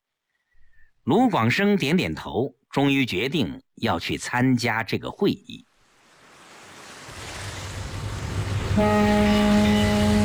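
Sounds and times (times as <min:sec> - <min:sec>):
speech: 0:01.0 - 0:05.7, 0:08.8 - 0:09.3
passenger ship whistle docking at harbor in Hong Kong: 0:08.7 - 0:10.2.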